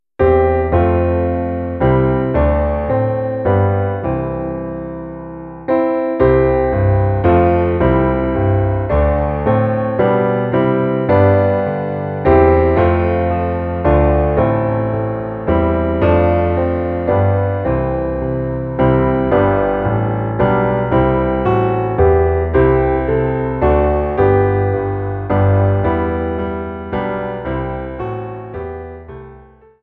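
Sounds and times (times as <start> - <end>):
instrumental hymn: 0.2 - 29.6.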